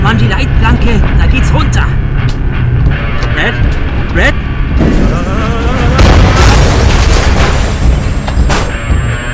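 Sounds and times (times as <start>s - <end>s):
speech: 0.1s - 2.3s, 3.4s - 5.6s
explosion boom: 4.7s - 9.2s.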